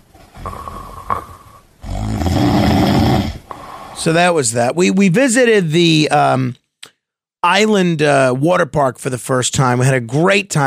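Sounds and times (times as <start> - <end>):
loud snoring: 0.4 - 3.6
speech: 4.0 - 6.6, 7.4 - 10.6.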